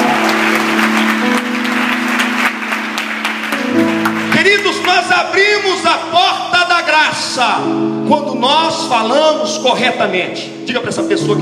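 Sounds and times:
audience applauding: 0:00.0 - 0:05.6
sustained organ-like tones: 0:00.0 - 0:11.4
speech: 0:04.9 - 0:11.4.

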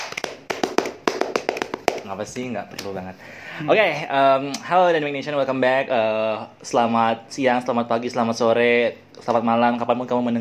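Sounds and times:
group scout-style clap: 0:00.0 - 0:02.2
speech: 0:02.1 - 0:10.4.

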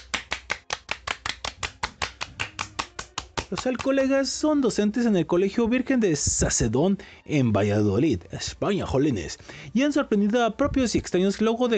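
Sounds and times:
applause: 0:00.0 - 0:04.0
speech: 0:03.5 - 0:11.7.

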